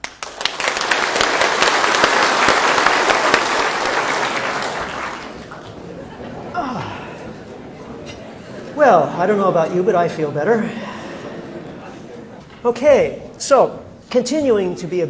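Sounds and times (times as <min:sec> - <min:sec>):
crowd clapping: 0:00.0 - 0:06.3
chuckles and murmurs: 0:05.4 - 0:12.6
speech: 0:08.8 - 0:10.8, 0:12.6 - 0:15.0.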